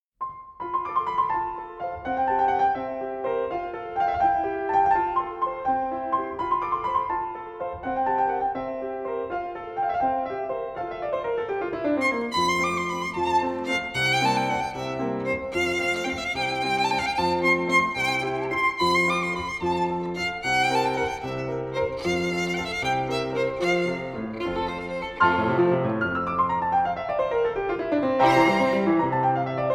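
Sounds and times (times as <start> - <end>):
sonata in F major rondo allegretto: 0.2 - 29.7.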